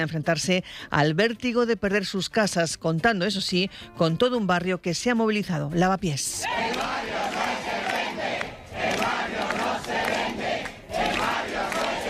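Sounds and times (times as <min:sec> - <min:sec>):
speech: 0:00.0 - 0:07.0
crowd chanting a protest slogan: 0:06.4 - 0:12.0.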